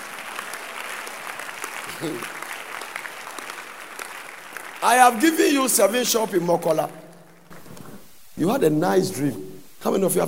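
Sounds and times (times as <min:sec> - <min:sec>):
audience clapping: 0:00.0 - 0:08.0
speech: 0:02.0 - 0:02.4, 0:04.8 - 0:07.0, 0:08.4 - 0:10.2.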